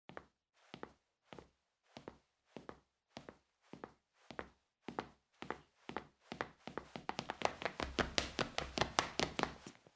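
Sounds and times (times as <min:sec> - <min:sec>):
running shoes on linoleum: 0:00.1 - 0:09.9.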